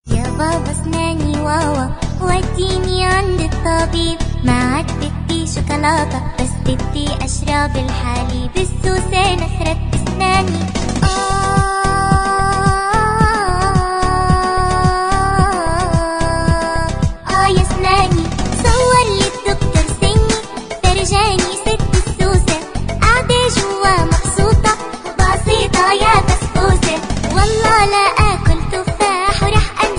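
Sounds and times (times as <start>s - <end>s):
Somali song: 0.2s - 29.9s.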